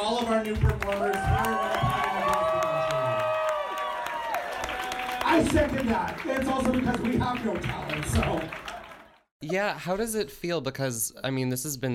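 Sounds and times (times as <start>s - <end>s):
speech: 0.1s - 1.6s, 5.4s - 8.6s, 9.4s - 11.9s
audience applause: 0.3s - 9.2s.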